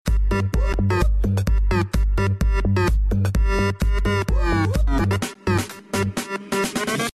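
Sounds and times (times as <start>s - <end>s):
house beat: 0.0s - 7.1s.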